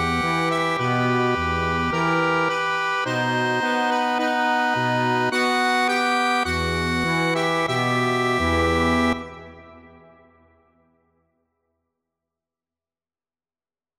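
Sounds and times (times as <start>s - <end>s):
accordion: 0.0s - 10.4s.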